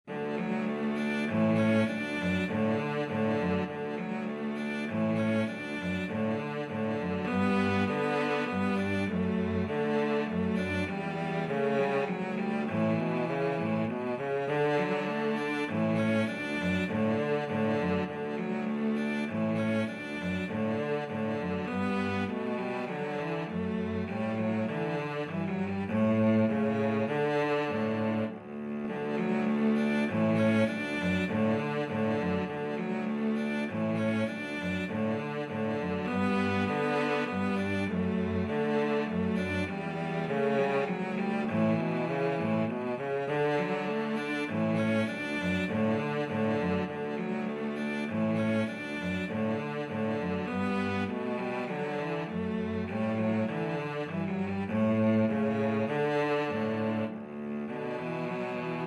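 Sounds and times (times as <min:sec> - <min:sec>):
cello duet playing a minuet: 0:00.0 - 0:58.8.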